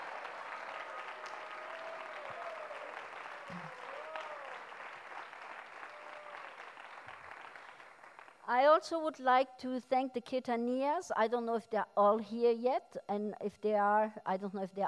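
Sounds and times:
audience applause: 0.0s - 8.4s
speech: 8.5s - 14.8s.

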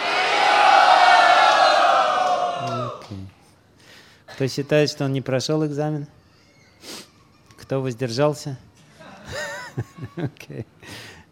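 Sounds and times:
crowd shouting a chant together: 0.0s - 3.0s
speech: 4.4s - 6.2s, 7.7s - 8.7s, 9.3s - 10.8s
laughter: 8.9s - 10.7s.

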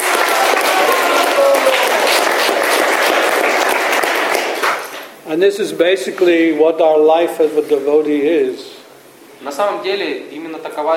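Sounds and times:
crowd applauding steadily: 0.0s - 5.1s
speech: 5.3s - 8.8s, 9.4s - 10.9s.

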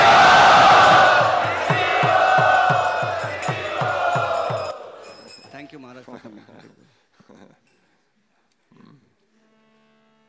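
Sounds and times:
temple crowd chanting in unison to welcome a visiting swami: 0.0s - 5.5s
steady rhythm of low evenly spaced beats: 0.0s - 5.8s.

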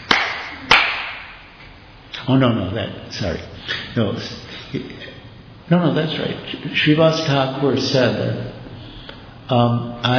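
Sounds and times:
hands clapping: 0.0s - 1.3s
speech: 2.3s - 8.6s, 9.5s - 10.1s.

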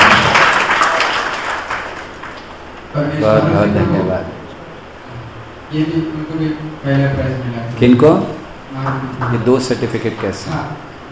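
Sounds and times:
audience applause: 0.0s - 2.9s, 8.8s - 10.4s
speech: 3.0s - 4.4s, 5.7s - 10.9s.

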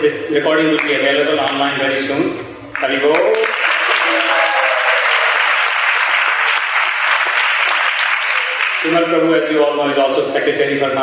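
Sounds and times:
speech: 0.0s - 3.6s, 8.8s - 11.0s
audience applause: 3.2s - 9.0s.

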